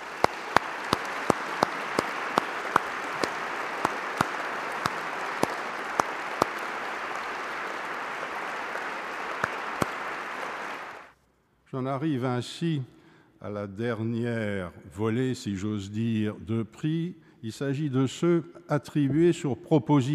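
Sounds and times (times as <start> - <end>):
audience applause for award winners: 0.0 - 11.1
speech: 11.7 - 20.1.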